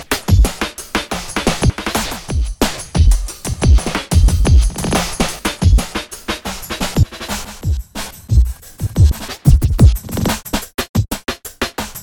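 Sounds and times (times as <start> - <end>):
drum kit: 0.0 - 12.0.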